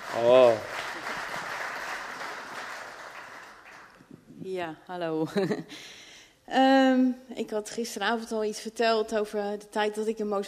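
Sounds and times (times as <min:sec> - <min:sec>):
audience applause: 0:00.0 - 0:04.0
speech: 0:00.1 - 0:00.7, 0:04.5 - 0:10.4.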